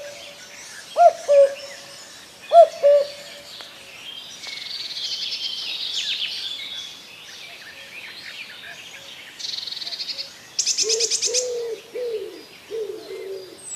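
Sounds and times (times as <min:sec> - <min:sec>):
common cuckoo calling: 0:00.0 - 0:00.4, 0:01.0 - 0:01.9, 0:02.5 - 0:03.5, 0:10.7 - 0:13.7.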